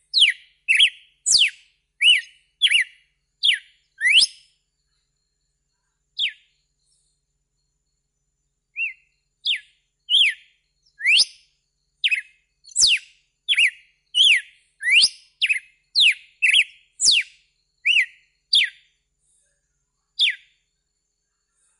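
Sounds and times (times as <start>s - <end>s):
red-cowled cardinal whistled song: 0.0s - 4.6s, 6.2s - 6.5s, 8.8s - 18.9s, 20.2s - 20.5s.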